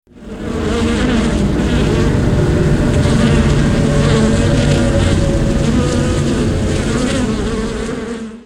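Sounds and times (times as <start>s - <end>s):
swarm effect: 0.1s - 8.4s.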